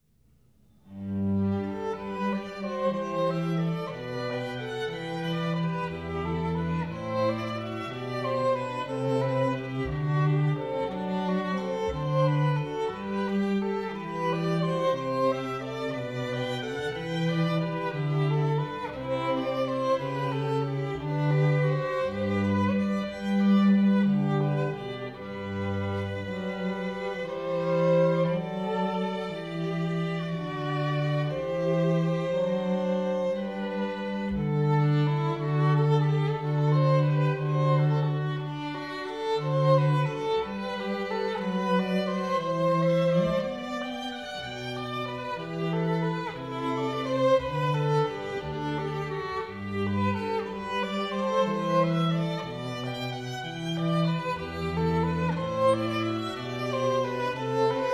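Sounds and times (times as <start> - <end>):
musical trio: 0.9 - 57.9.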